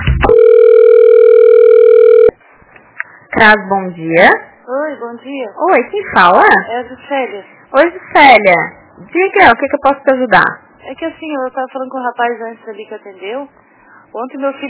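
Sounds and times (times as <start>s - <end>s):
choppy broken electronic telephone tones after a dropped call: 0.2s - 2.4s
speech: 3.4s - 14.6s.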